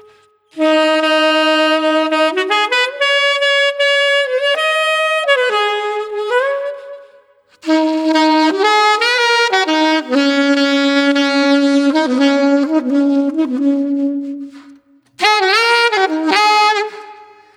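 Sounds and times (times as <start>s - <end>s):
sultry saxophone at 120 BPM: 0.0s - 17.5s.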